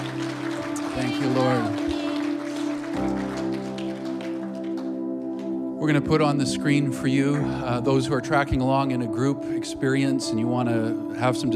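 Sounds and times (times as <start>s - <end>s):
audience applause: 0.0s - 5.6s
speech: 1.0s - 1.9s, 5.8s - 11.5s.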